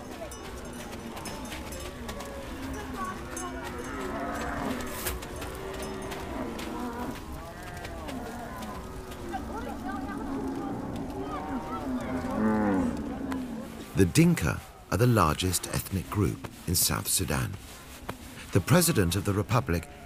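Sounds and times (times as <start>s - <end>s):
herd of cattle mooing at nomad camp: 1.1s - 13.8s
speech: 14.0s - 17.8s, 18.5s - 20.0s.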